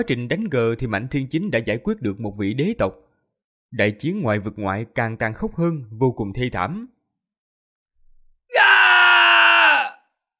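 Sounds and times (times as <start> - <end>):
speech: 0.0 - 3.1, 3.7 - 7.0
anguished cry of pain: 8.5 - 10.1.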